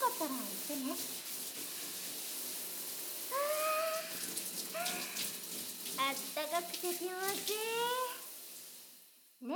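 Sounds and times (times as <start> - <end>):
shower water spraying: 0.0 - 9.4
speech: 0.2 - 1.7, 6.4 - 8.0.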